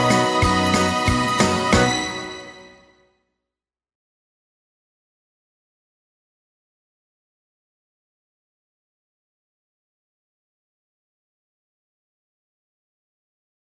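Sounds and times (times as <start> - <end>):
Christmas song: 0.0 - 3.0.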